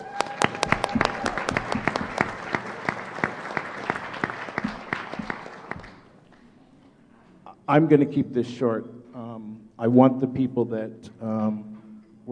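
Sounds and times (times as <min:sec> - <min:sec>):
crowd applauding: 0:00.0 - 0:06.4
speech: 0:07.7 - 0:09.0, 0:09.8 - 0:11.7.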